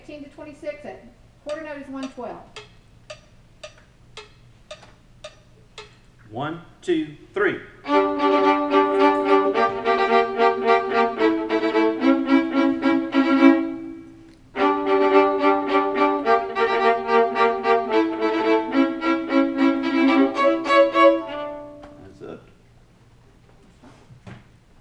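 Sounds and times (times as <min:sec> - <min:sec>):
second viola part: 0:07.8 - 0:22.1.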